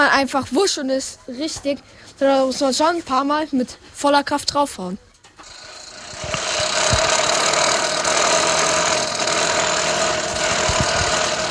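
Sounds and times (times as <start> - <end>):
speech: 0.1 - 5.6
broken lawnmower engine: 5.5 - 11.5.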